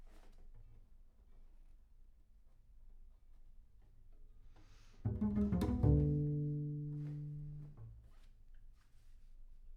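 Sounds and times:
bass sound: 5.1 - 7.8.

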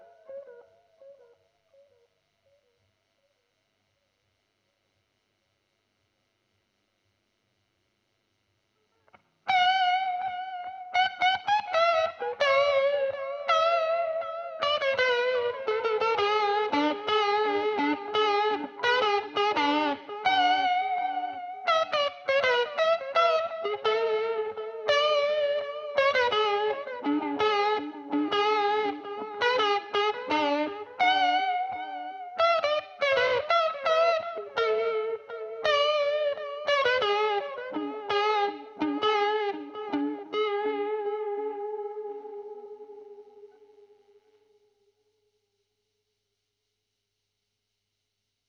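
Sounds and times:
guitar recorded with Royer microphone: 0.0 - 3.4, 8.8 - 44.9.

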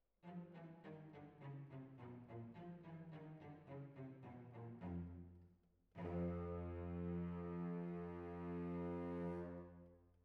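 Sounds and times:
violins: 0.2 - 5.3, 6.0 - 9.7.

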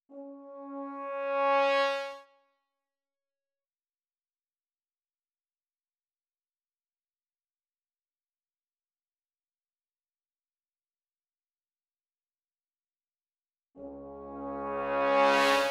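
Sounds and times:
brass instruments: 0.1 - 2.3, 13.8 - 15.6.

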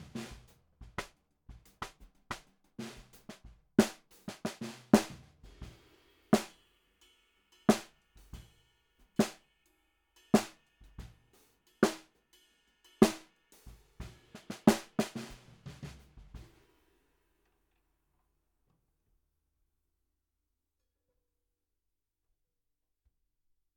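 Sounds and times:
snare drum: 0.0 - 6.6, 7.7 - 8.5, 9.2 - 9.4, 10.3 - 12.2, 13.0 - 16.7.

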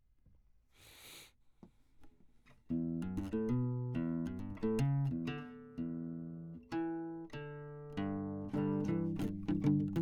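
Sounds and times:
classical guitar: 2.5 - 9.9.

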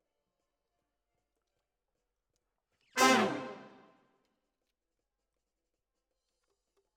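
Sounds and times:
saxophone: 3.0 - 3.8.

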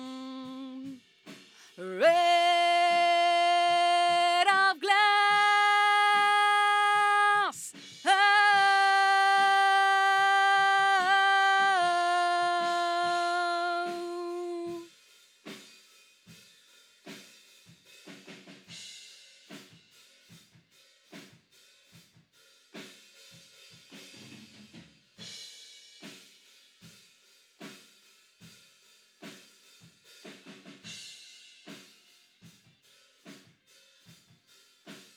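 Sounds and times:
vocals: 0.0 - 1.0, 1.6 - 14.9.

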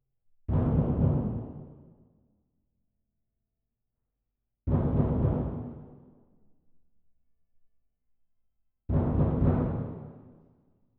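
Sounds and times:
percussion: 0.5 - 2.1, 4.7 - 6.2, 8.9 - 10.6.

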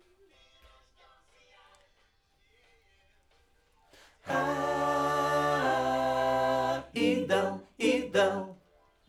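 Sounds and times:
backing vocals on AKG microphone: 4.3 - 8.6.

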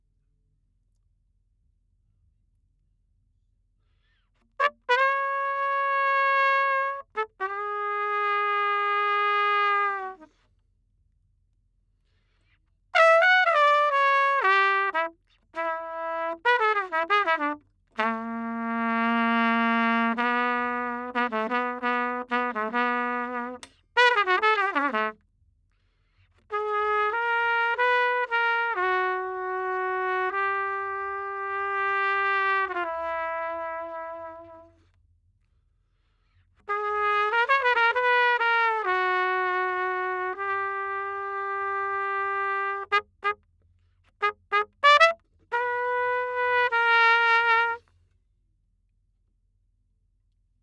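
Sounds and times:
trumpet: 4.6 - 10.5, 13.0 - 25.2, 26.4 - 34.9, 36.6 - 43.4, 44.0 - 48.0.

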